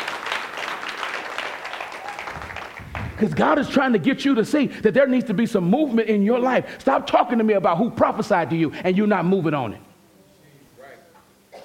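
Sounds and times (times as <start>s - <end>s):
audience clapping hands: 0.0s - 4.0s
speech: 3.2s - 9.9s.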